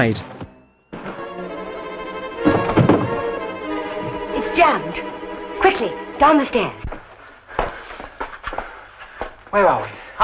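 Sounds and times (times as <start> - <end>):
speech: 0.0 - 0.3, 4.6 - 7.0, 9.5 - 10.2
door being smashed down: 2.4 - 3.2.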